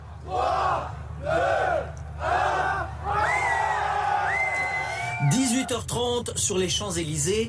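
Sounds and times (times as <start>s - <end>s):
large crowd cheering outside Apple store: 0.2s - 5.7s
speech: 5.7s - 7.4s.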